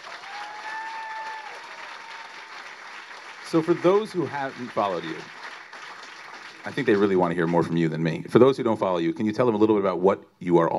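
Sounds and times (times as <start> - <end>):
audience applause: 0.0 - 8.1
speech: 3.5 - 5.4, 6.6 - 10.7.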